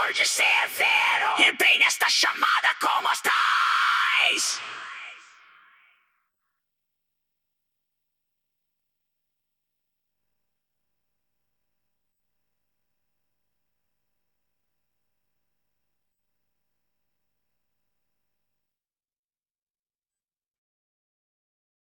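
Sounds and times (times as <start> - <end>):
person singing: 0.0 - 5.8.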